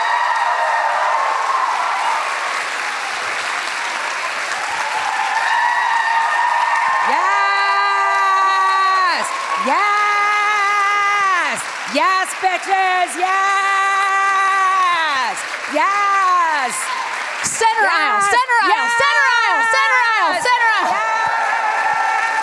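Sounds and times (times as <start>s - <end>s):
crowd clapping for a comedian walking on stage: 0.0s - 22.4s
crowd whooping for a comedian: 0.0s - 22.4s
speech: 11.9s - 13.7s, 15.7s - 17.0s, 17.6s - 21.5s
long drawn-out shouted voices: 17.6s - 21.0s.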